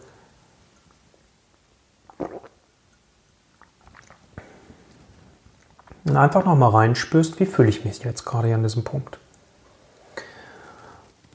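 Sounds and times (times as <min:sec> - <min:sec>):
sipping tea: 0:02.1 - 0:02.6, 0:03.5 - 0:06.1
speech: 0:06.0 - 0:09.2.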